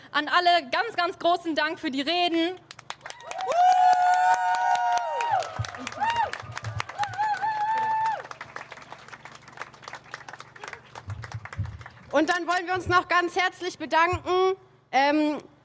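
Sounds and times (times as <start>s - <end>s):
speech: 0.1s - 2.7s, 3.4s - 3.9s, 12.2s - 15.5s
crowd applause: 3.0s - 12.2s.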